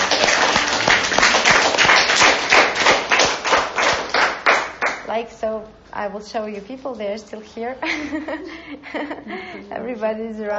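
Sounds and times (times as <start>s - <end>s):
audience clapping at the close of a talk: 0.0s - 5.1s
speech: 5.2s - 10.5s.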